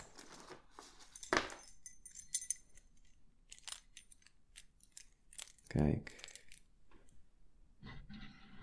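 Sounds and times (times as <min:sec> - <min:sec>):
keys locking a door: 0:00.0 - 0:06.7
speech: 0:05.8 - 0:06.2.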